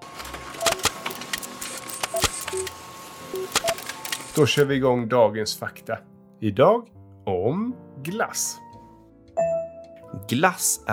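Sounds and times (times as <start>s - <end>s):
printer printing out a page: 0.0s - 4.7s
electronic beeps: 0.6s - 4.2s
speech: 4.4s - 8.6s, 10.1s - 10.9s.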